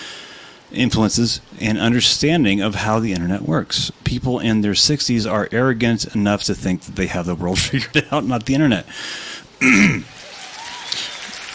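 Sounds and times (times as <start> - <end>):
quiet hiss: 0.0 - 11.5
speech: 0.7 - 10.2
incidental clapping: 10.0 - 11.5.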